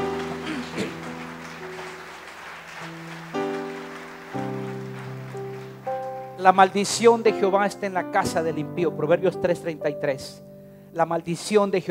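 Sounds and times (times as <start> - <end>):
audience applauding: 0.0 - 6.8
sustained keyboard chords: 0.0 - 11.0
speech: 6.4 - 11.8.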